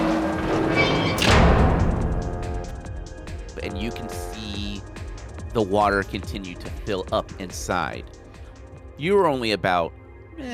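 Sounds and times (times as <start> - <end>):
heavy metal doors slamming down: 0.0 - 3.6
steady grinding rumbling din: 0.0 - 5.6
speech: 5.5 - 8.2, 9.0 - 10.5.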